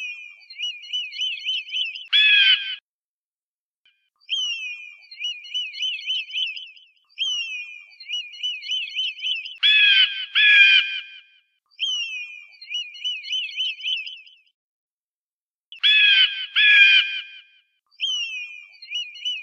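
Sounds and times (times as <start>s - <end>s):
eagle piping whistled calls: 0.1s - 2.8s, 4.3s - 11.2s, 11.8s - 14.3s, 15.8s - 17.3s, 18.0s - 19.4s.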